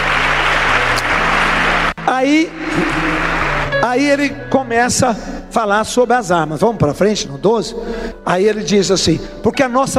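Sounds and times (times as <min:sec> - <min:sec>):
applause: 0:00.0 - 0:02.1, 0:02.7 - 0:03.7
speech: 0:02.2 - 0:02.9, 0:03.9 - 0:09.9.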